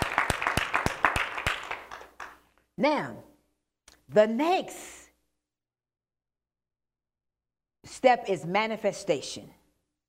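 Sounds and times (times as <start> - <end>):
church congregation hand clap during a service: 0.0 - 2.5
speech: 2.8 - 3.3, 4.1 - 5.0, 8.0 - 9.6.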